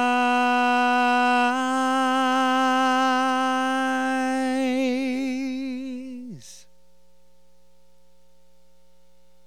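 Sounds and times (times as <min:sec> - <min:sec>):
vocals: 0:00.0 - 0:06.7.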